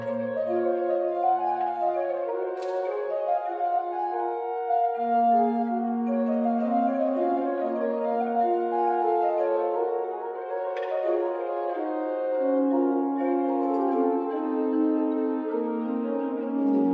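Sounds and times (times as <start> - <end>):
Gothic organ: 0.0 - 16.9.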